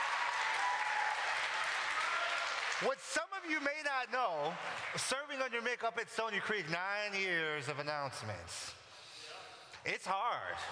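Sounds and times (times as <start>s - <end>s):
audience applause during a church service: 0.0s - 5.2s
speech: 2.8s - 8.8s, 9.8s - 10.7s.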